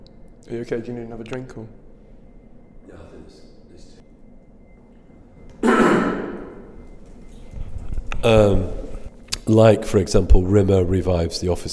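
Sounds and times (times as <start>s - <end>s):
speech: 0.4s - 1.8s, 8.2s - 8.7s, 9.5s - 11.7s
person coughing: 5.6s - 6.6s.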